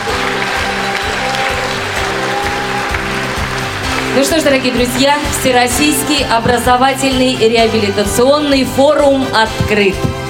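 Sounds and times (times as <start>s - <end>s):
audience applause: 0.0s - 6.3s
music playing: 0.0s - 10.2s
speech: 4.2s - 10.2s.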